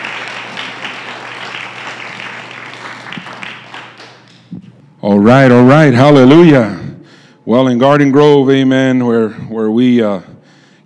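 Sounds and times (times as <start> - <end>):
audience clapping: 0.0 - 4.5
speech: 5.0 - 6.8, 7.5 - 10.3.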